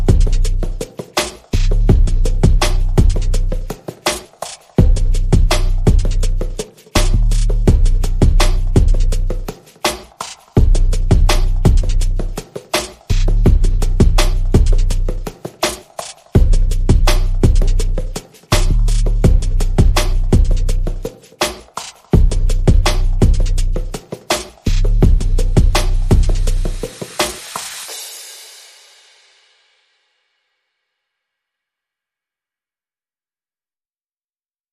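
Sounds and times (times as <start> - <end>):
bass: 0.0 - 0.9, 1.5 - 3.8, 4.8 - 9.5, 10.6 - 12.4, 13.1 - 15.3, 16.4 - 21.1, 22.2 - 24.0, 24.6 - 26.9
drums: 0.0 - 30.2.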